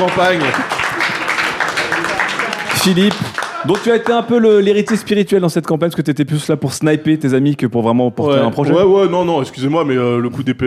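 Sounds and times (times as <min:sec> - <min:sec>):
speech: 0:00.0 - 0:00.8, 0:02.8 - 0:10.6
applause: 0:00.0 - 0:05.2.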